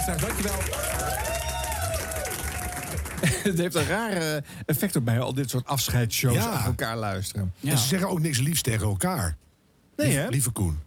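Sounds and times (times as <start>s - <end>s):
speech: 0.0s - 1.2s, 3.2s - 9.4s, 10.0s - 10.8s
crowd applauding: 0.0s - 3.7s
laughter: 3.1s - 4.2s.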